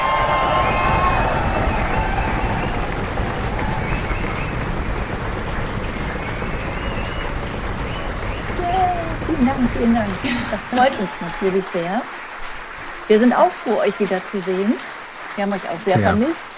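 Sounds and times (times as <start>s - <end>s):
whistles: 0.0s - 16.1s
audience applause: 0.0s - 16.5s
cheering: 0.0s - 16.5s
laughter: 8.6s - 12.0s, 13.1s - 14.8s, 15.4s - 16.5s
speech: 9.6s - 12.2s, 13.1s - 16.5s.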